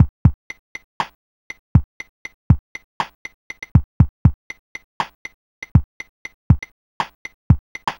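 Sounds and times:
Apple II chill chiptune beat with drums: 0.0 - 0.4, 1.8 - 4.4, 5.0 - 7.9.

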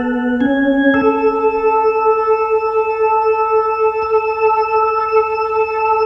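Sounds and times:
organ lick: 0.0 - 6.0.

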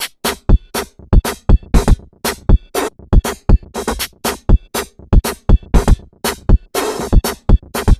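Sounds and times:
junk hip downbeat dance groove: 0.0 - 7.9.

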